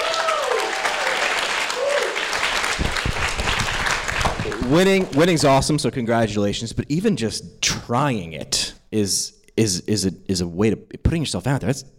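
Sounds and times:
whoops: 0:00.0 - 0:02.4
crowd applauding: 0:00.0 - 0:05.7
speech: 0:04.7 - 0:11.9.

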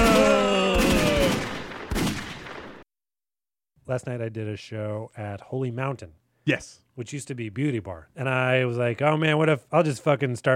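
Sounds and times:
gunfire: 0:00.0 - 0:02.8
speech: 0:03.9 - 0:10.5.

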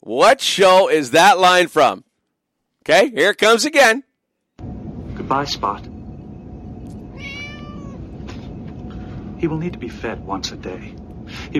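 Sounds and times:
speech: 0:00.1 - 0:02.1, 0:02.8 - 0:04.1, 0:05.3 - 0:05.9, 0:09.4 - 0:11.5
cat meowing: 0:07.0 - 0:08.2.

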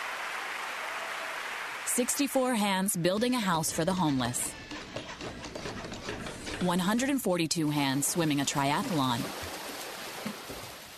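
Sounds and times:
large crowd applauding: 0:00.0 - 0:02.4
speech: 0:02.0 - 0:04.8, 0:06.6 - 0:09.5.

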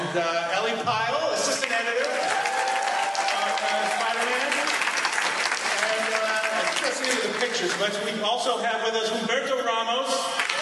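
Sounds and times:
speech: 0:00.1 - 0:01.2, 0:07.0 - 0:10.5
audience applause at a convention panel: 0:01.4 - 0:08.1, 0:10.4 - 0:10.5.

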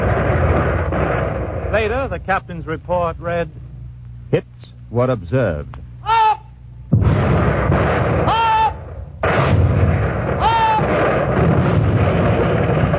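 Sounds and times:
naval guns firing shells: 0:00.0 - 0:03.2, 0:06.9 - 0:12.9
speech: 0:01.7 - 0:03.6, 0:04.3 - 0:05.8.

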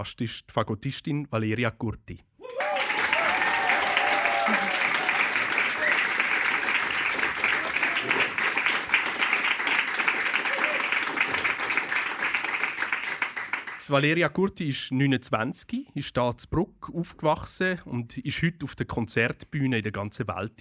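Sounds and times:
speech: 0:00.0 - 0:02.3, 0:13.9 - 0:20.6
faint cheering: 0:02.4 - 0:09.2, 0:10.1 - 0:11.6
audience applause: 0:02.4 - 0:13.9.

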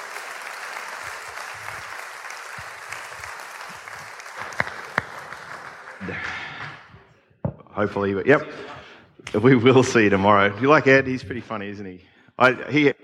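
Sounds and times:
audience applause: 0:00.0 - 0:07.0
speech: 0:07.8 - 0:13.0.

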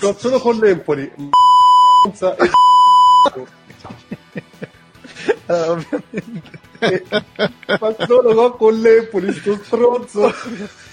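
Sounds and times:
speech: 0:00.0 - 0:04.1, 0:05.5 - 0:10.9
high-pitched censoring beeps: 0:01.4 - 0:03.3
laughter: 0:02.4 - 0:10.9.

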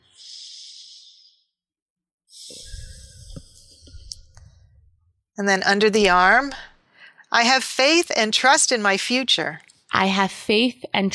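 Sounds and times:
deep breathing: 0:00.0 - 0:01.5, 0:02.3 - 0:04.9, 0:06.8 - 0:07.3
speech: 0:05.4 - 0:06.7, 0:07.3 - 0:11.1.

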